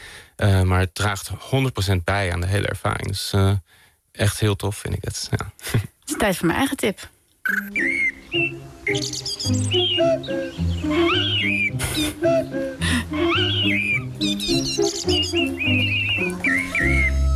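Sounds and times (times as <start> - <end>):
speech: 0.4 - 17.2
cuckoo singing: 7.4 - 17.3
blackbird singing: 7.5 - 17.3.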